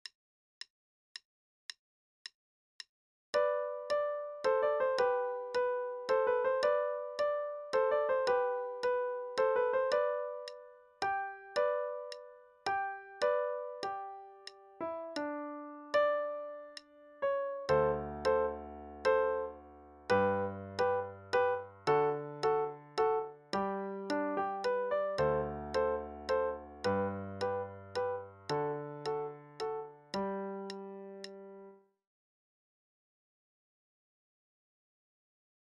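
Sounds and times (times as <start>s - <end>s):
minuet play-along music: 3.4s - 31.6s.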